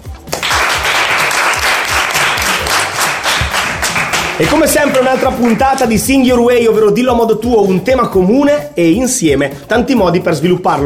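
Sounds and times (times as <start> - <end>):
audience applause: 0.3 - 5.8
speech: 4.4 - 10.8.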